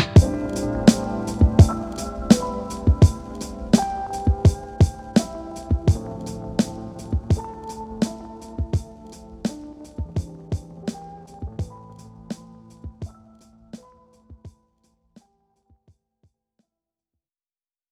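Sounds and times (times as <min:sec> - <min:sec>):
bouncy piano: 0:00.2 - 0:13.2.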